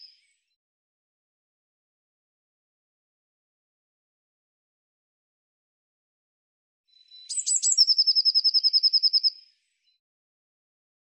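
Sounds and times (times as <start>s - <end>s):
bird song: 0.0s - 0.6s, 6.9s - 10.1s.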